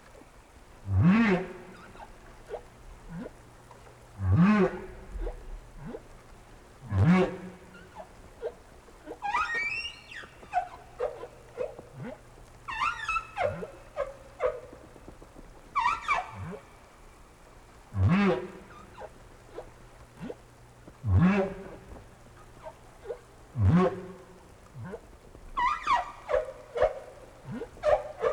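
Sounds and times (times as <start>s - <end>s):
whale chirps and grunts: 0.0s - 28.3s.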